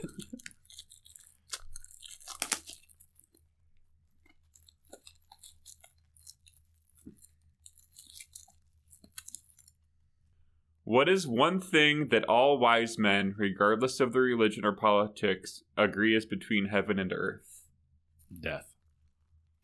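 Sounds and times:
unopened package crinkled and torn open: 0.0s - 3.5s, 4.4s - 9.8s
speech: 10.9s - 17.5s, 18.3s - 18.7s.

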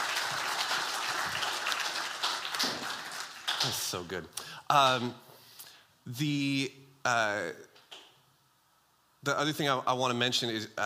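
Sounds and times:
audience round of applause: 0.0s - 4.0s
speech: 3.6s - 5.3s, 6.1s - 7.7s, 9.2s - 10.8s.

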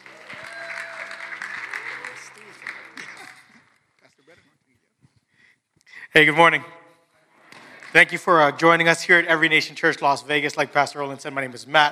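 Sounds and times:
audience applauding: 0.0s - 4.2s, 7.5s - 8.8s
speech: 6.1s - 6.8s, 7.9s - 11.8s.

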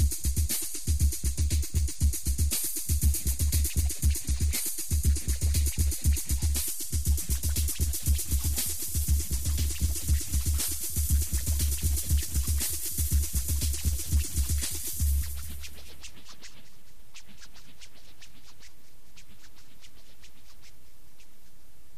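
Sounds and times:
drums: 0.0s - 16.7s.

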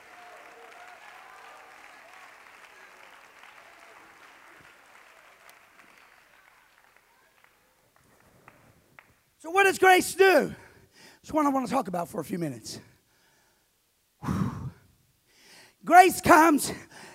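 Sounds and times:
audience clapping hands: 0.0s - 9.4s
speech: 9.4s - 10.6s, 11.2s - 12.9s, 15.9s - 17.1s.

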